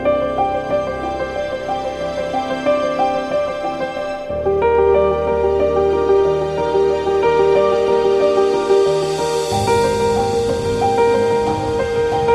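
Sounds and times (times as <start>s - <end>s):
ambient piano: 0.0s - 12.3s.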